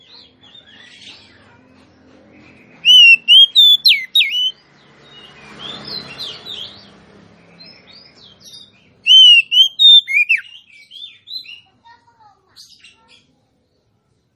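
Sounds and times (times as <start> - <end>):
female Oriental magpie-robin singing rich whistled notes: 2.8 - 4.5, 9.1 - 10.6.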